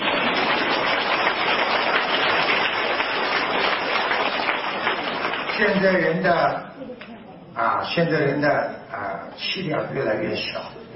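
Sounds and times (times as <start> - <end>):
audience applause: 0.0 - 6.1
speech: 5.6 - 10.7.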